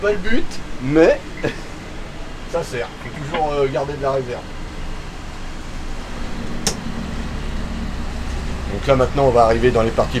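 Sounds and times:
speech: 0:00.0 - 0:01.7, 0:02.5 - 0:04.6, 0:08.7 - 0:10.1
boat engines powering up: 0:00.0 - 0:10.1
sharp click: 0:06.6 - 0:06.9.

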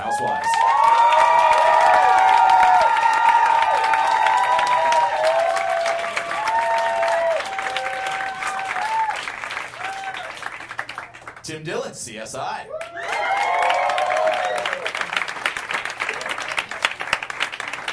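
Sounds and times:
whoops and cheers: 0:00.0 - 0:10.5, 0:12.7 - 0:15.1
audience applause: 0:00.0 - 0:11.4, 0:12.8 - 0:17.9
speech: 0:00.2 - 0:00.5, 0:11.5 - 0:13.1.

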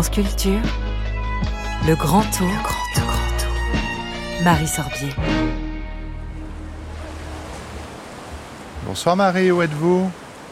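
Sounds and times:
speech: 0:00.0 - 0:03.1, 0:04.4 - 0:05.6, 0:08.9 - 0:10.2
Mediterranean Sea waves at Menton: 0:00.0 - 0:10.5.

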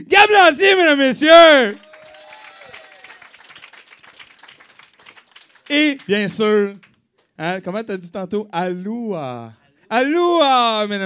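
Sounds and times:
speech: 0:00.0 - 0:01.8, 0:05.7 - 0:11.0
audience applause: 0:01.8 - 0:06.9.

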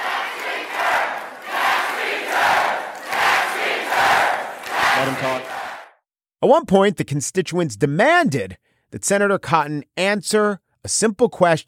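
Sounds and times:
crowd cheering and yelling chants: 0:00.0 - 0:06.0
speech: 0:05.0 - 0:05.5, 0:06.4 - 0:11.6.

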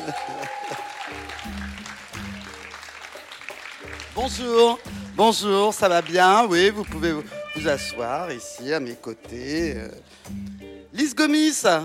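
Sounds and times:
speech: 0:00.0 - 0:00.8, 0:04.2 - 0:10.4, 0:11.0 - 0:11.8
audience applause: 0:00.0 - 0:07.4.

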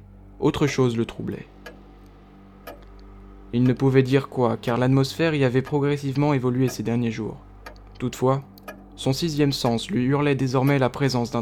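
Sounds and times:
speech: 0:00.4 - 0:01.6, 0:03.5 - 0:11.4
clock ticking: 0:01.6 - 0:07.0, 0:07.6 - 0:09.8, 0:10.6 - 0:11.4.

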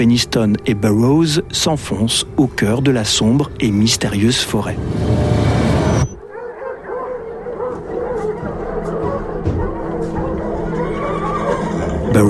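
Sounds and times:
speech: 0:00.0 - 0:05.4
agitated dogs yipping and barking on a neighbouring farm: 0:05.9 - 0:12.1
agitated horses whinnying on a neighbouring farm: 0:10.2 - 0:12.2.

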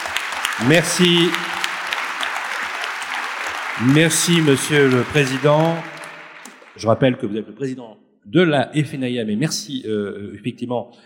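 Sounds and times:
audience applause: 0:00.0 - 0:07.1
speech: 0:00.6 - 0:01.5, 0:03.8 - 0:05.9, 0:06.8 - 0:11.0.

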